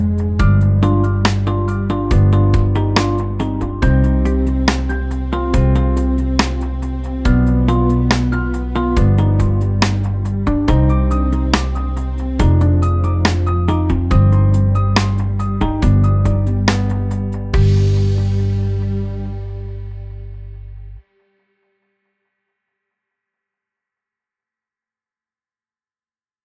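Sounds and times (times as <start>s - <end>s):
sad urban music: 0.0s - 21.1s.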